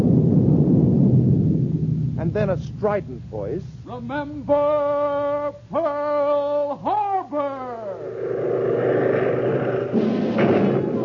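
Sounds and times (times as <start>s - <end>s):
roll of a thunder drum: 0.0s - 5.1s, 8.0s - 11.0s
speech: 2.3s - 9.2s.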